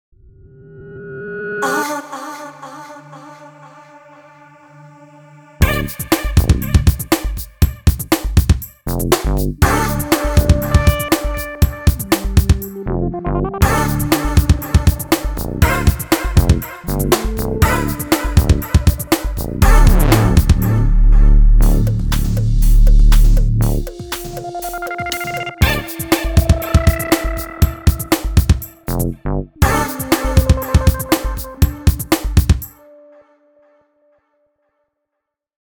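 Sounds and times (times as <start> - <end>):
electronic EDM music: 5.6 - 33.1.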